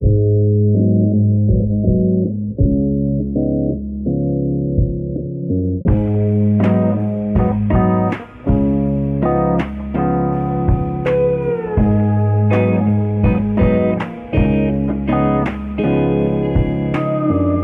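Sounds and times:
guitar: 0.0 - 17.6.

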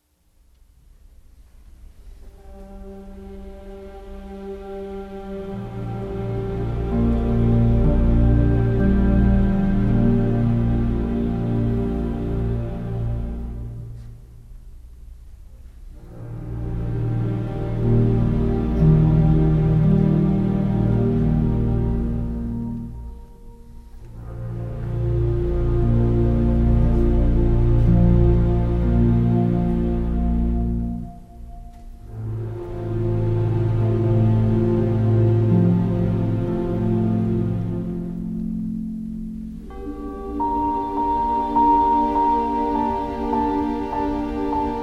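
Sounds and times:
sad string music: 2.0 - 14.6, 15.9 - 44.8.

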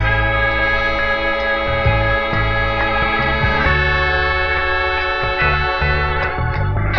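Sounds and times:
phonky loops: 0.0 - 6.6
horns: 0.0 - 6.9.

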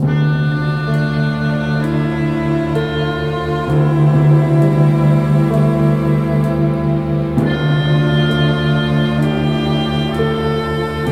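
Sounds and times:
sad string music: 0.0 - 11.1.

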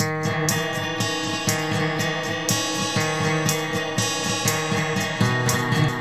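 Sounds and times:
jazz guitar loop: 0.0 - 5.9.

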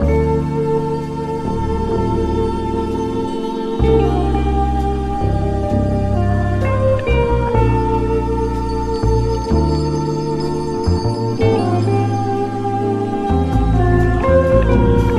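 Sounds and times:
guitar: 0.0 - 15.1.

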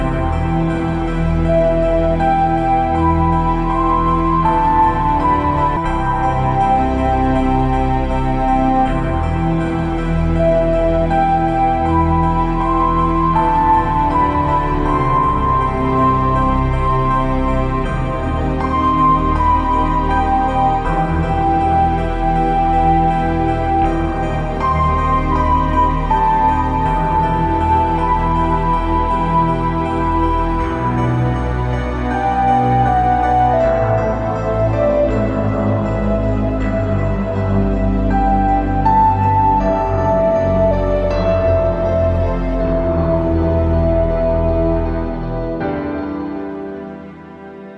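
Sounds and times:
long keyboard piece: 0.0 - 47.7.

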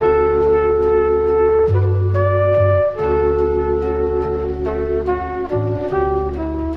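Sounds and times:
jazz horns loop: 0.0 - 6.7.

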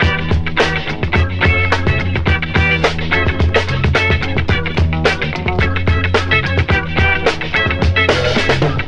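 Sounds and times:
guitar loops: 0.0 - 8.8.

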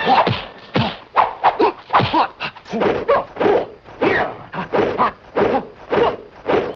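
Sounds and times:
martial arts: 0.0 - 6.7.

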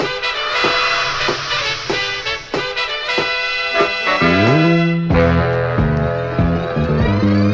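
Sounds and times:
horns: 0.0 - 7.4.

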